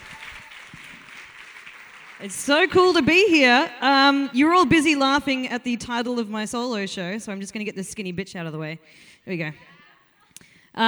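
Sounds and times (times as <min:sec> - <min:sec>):
audience applause: 0:00.0 - 0:03.0
speech: 0:02.2 - 0:09.7.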